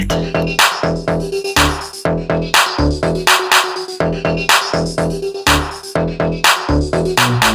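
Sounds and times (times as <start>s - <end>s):
Singaporean music ringtone: 0.1s - 7.4s.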